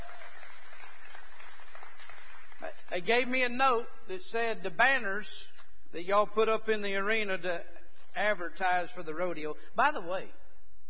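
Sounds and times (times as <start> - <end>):
church congregation clapping during a service: 0.0 - 3.4
speech: 2.9 - 10.4.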